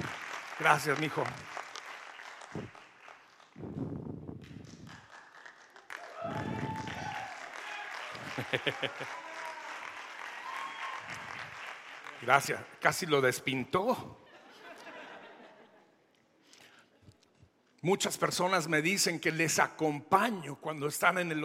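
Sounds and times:
audience applause: 0:00.0 - 0:03.8, 0:04.4 - 0:12.6
speech: 0:00.6 - 0:01.5, 0:02.5 - 0:02.8, 0:08.6 - 0:09.3, 0:12.2 - 0:14.2, 0:17.8 - 0:21.4
voices calling out and cheering: 0:05.9 - 0:11.5
laughter: 0:08.0 - 0:09.6, 0:14.2 - 0:16.0.

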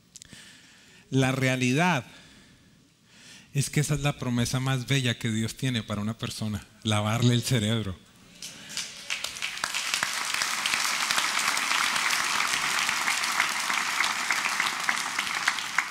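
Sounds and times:
speech: 0:01.1 - 0:02.2, 0:03.6 - 0:08.0
audience applause: 0:08.4 - 0:15.8.

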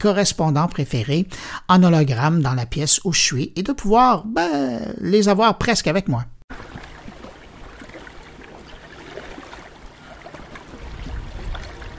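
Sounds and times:
speech: 0:00.0 - 0:06.7
boats at the seaside: 0:06.5 - 0:11.9
seaside water: 0:06.5 - 0:11.9.

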